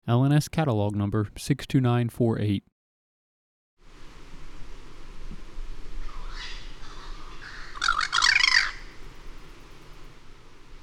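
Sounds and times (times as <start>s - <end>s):
speech: 0.1s - 2.7s
harsh bird squawk: 6.0s - 9.0s.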